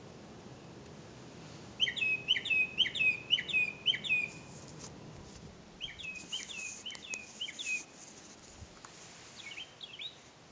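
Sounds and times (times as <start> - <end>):
background hiss: 0.0 - 10.5
bird chirping: 1.8 - 4.5, 5.8 - 7.9, 9.4 - 10.2.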